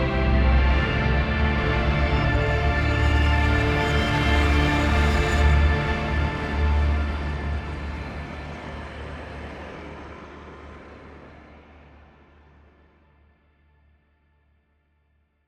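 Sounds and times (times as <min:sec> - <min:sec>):
drone metal music: 0:00.0 - 0:10.0.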